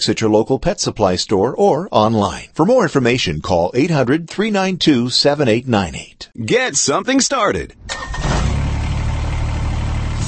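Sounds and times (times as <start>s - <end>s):
speech: 0.0s - 8.2s
Kubota BX Series subcompact tractor engine rumbling: 7.7s - 10.2s.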